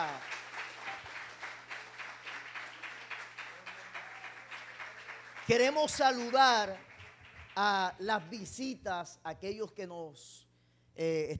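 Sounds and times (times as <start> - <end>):
audience applause: 0.0 - 8.3
speech: 5.5 - 6.9, 7.6 - 11.3.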